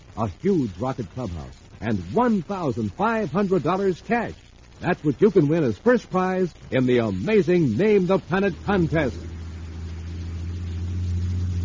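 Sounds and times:
speech: 0:00.2 - 0:09.3
full-size motor truck engine rumbling, pulling a space rocket: 0:06.6 - 0:11.6.

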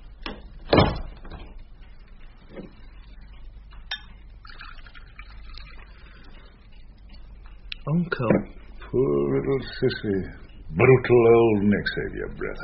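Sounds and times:
low steady hum: 0:00.0 - 0:12.6
faint clicks and light knocks: 0:00.1 - 0:04.4, 0:05.5 - 0:08.9
door swinging shut with a muffled thud: 0:00.3 - 0:01.5
speech: 0:07.9 - 0:12.6.

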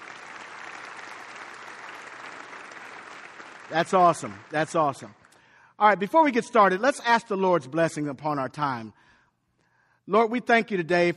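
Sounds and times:
church audience clapping to welcome a guest: 0:00.0 - 0:05.4
speech: 0:03.7 - 0:05.2, 0:05.8 - 0:09.1, 0:10.1 - 0:11.1.

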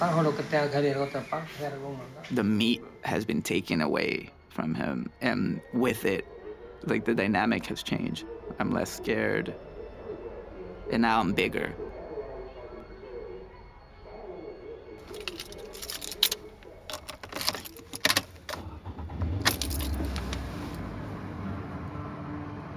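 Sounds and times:
speech: 0:00.0 - 0:09.6, 0:10.9 - 0:11.8
keys jingling: 0:15.0 - 0:20.8
low steady rumble inside a car: 0:16.6 - 0:22.1.

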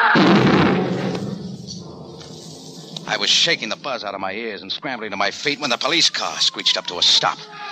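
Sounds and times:
car bomb explosion: 0:00.0 - 0:04.0
speech: 0:03.1 - 0:07.7.

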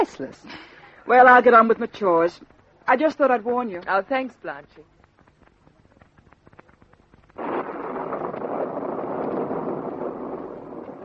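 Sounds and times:
speech: 0:00.0 - 0:04.9
storm wind howling: 0:07.3 - 0:11.0.

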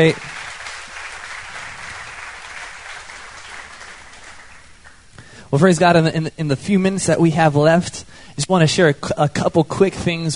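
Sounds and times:
speech: 0:00.0 - 0:00.3, 0:05.5 - 0:10.3
audience applause: 0:00.0 - 0:05.0.

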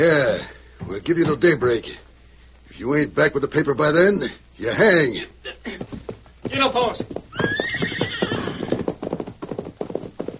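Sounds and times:
speech: 0:00.0 - 0:02.1, 0:02.8 - 0:07.5
galloping hoofbeats of a horse riding away: 0:05.6 - 0:10.3
horse whinnying: 0:07.3 - 0:09.1.

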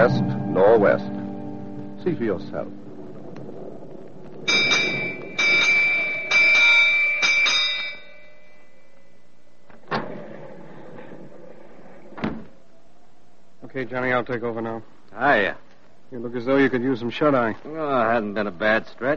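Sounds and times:
speech: 0:00.0 - 0:01.2, 0:02.0 - 0:02.8, 0:13.8 - 0:19.1
ship's bell striking the hour: 0:04.5 - 0:09.7.

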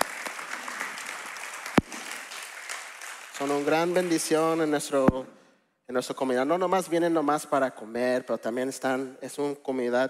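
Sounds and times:
audience applause: 0:00.0 - 0:04.7
speech: 0:03.4 - 0:10.0.

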